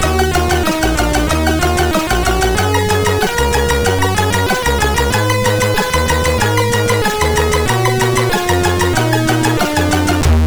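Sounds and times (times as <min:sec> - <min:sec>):
music box tune on MOS6581R4 sound chip: 0:00.1 - 0:10.3.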